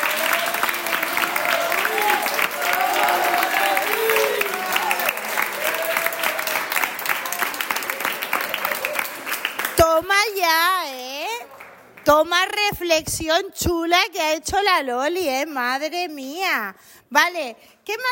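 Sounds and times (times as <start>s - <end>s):
applause: 0.0s - 10.4s, 11.3s - 12.1s
speech: 12.1s - 18.0s.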